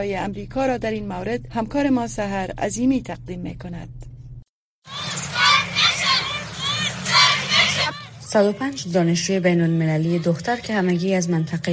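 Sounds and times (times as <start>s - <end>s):
speech: 0.0s - 4.1s, 8.3s - 11.7s
female protesters chanting: 4.9s - 11.7s.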